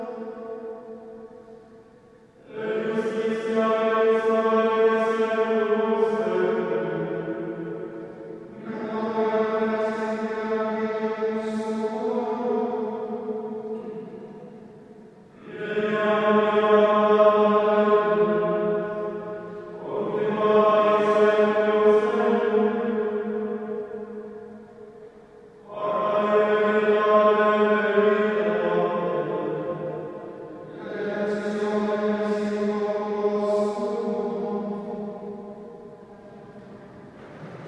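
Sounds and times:
monks chanting: 2.4s - 14.4s, 15.3s - 24.6s, 25.6s - 37.6s.

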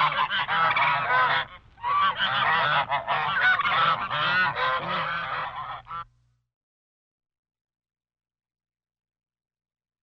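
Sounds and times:
geese and ducks honking: 0.0s - 6.1s.

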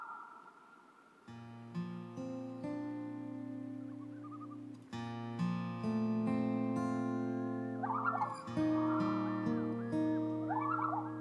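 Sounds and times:
loon tremolo: 1.7s - 11.1s
loon wail: 7.8s - 11.1s.

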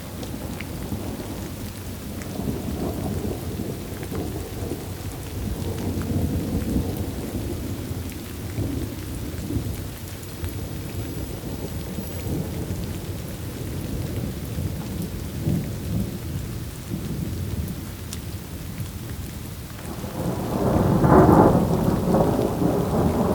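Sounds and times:
steady rain downpour: 0.0s - 23.3s
thunder: 2.3s - 16.2s, 19.8s - 23.3s.

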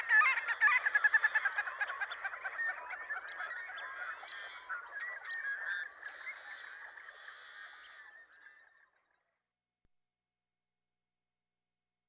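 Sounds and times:
Marbled Godwit in Western North America: 0.0s - 8.4s.

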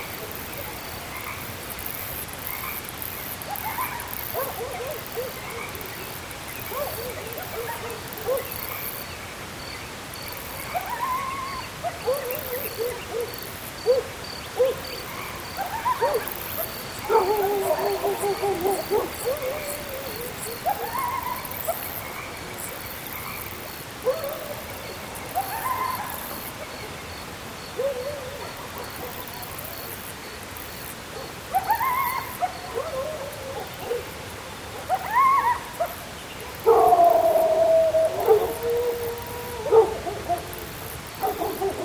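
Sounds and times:
insects in mountain ambience in close perspective: 0.0s - 41.8s.

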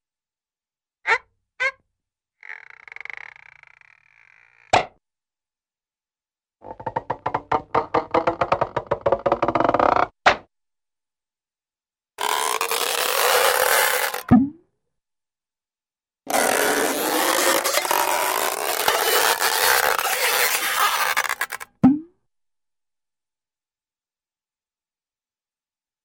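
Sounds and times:
various squeaky popping creaks: 2.4s - 5.0s, 6.6s - 10.1s, 12.2s - 14.4s, 16.3s - 21.8s.

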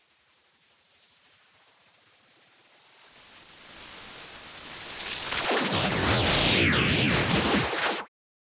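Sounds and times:
whoosh: 5.1s - 8.1s.

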